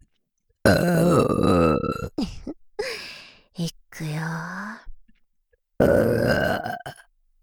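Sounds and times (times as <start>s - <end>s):
person burping: 0.6s - 2.3s, 5.8s - 7.1s
speech: 0.7s - 1.5s.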